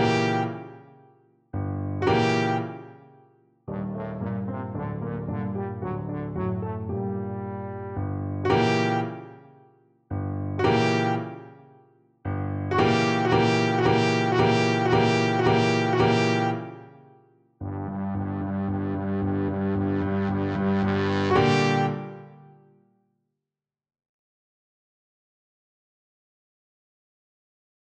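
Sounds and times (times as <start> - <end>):
trombone: 0.0 - 0.7, 2.0 - 2.8, 3.7 - 9.3, 10.6 - 11.4, 12.7 - 16.8, 17.7 - 22.3.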